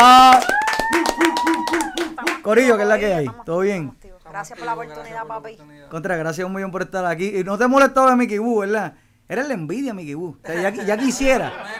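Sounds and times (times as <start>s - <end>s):
applause, hands clapping: 0.0s - 3.4s
laughter: 1.2s - 5.3s, 10.5s - 11.7s
speech: 2.5s - 11.7s.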